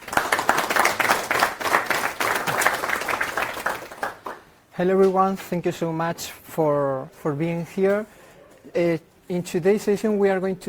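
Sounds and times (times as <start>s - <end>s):
audience applause: 0.0s - 4.4s
speech: 4.8s - 10.6s.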